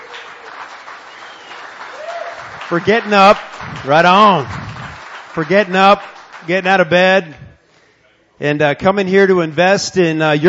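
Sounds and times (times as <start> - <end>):
congregation clapping at a church service: 0.0 - 7.3
speech: 2.7 - 4.6, 5.4 - 7.4, 8.4 - 10.4.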